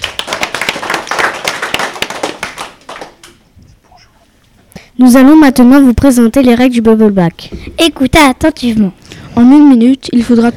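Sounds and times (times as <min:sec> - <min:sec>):
audience applauding: 0:00.0 - 0:03.4
speech: 0:05.0 - 0:10.5.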